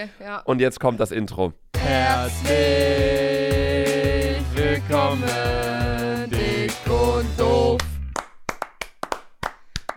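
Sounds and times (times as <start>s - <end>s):
speech: 0.0s - 7.9s
hosts clapping hands for themselves: 7.8s - 9.9s.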